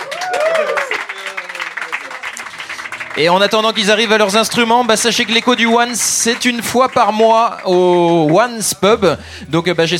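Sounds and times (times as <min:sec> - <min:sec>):
audience cheering and whooping: 0:00.0 - 0:01.3
audience applauding the band: 0:00.0 - 0:09.0
speech: 0:03.2 - 0:09.9.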